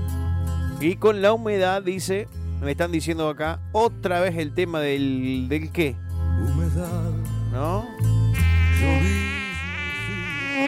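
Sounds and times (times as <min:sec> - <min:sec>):
speech: 0:00.8 - 0:08.0
mosquito buzzing close to the ear: 0:08.4 - 0:10.6.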